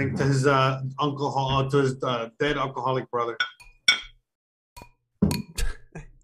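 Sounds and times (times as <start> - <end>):
speech: 0.0 - 3.6
drinking glasses clinking in a toast: 3.4 - 4.2.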